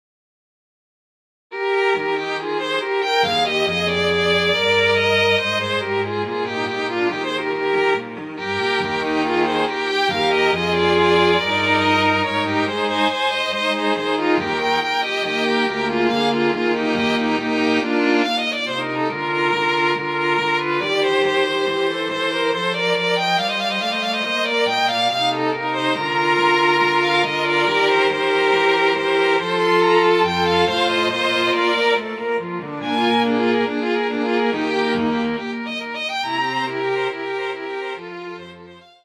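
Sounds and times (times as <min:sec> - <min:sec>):
string quartet with all voices: 0:01.6 - 0:39.0.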